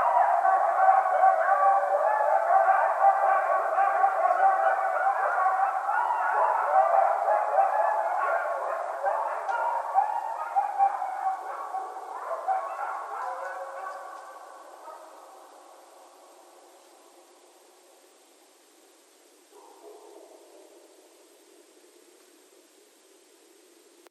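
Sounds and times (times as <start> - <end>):
several coyotes howling in a group at night: 0.0 - 18.0.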